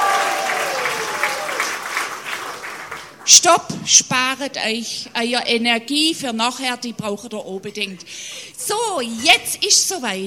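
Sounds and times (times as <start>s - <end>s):
crowd cheering: 0.0s - 3.2s
audience applause: 0.0s - 3.3s
speech: 3.3s - 10.2s.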